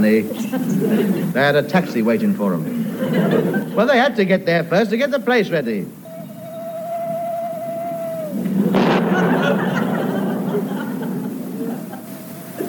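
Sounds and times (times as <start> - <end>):
speech: 0.0 - 6.0
laughter: 0.2 - 1.6, 2.6 - 4.0, 6.0 - 12.6
owl hooting: 5.8 - 12.6
thunderstorm: 6.1 - 12.6.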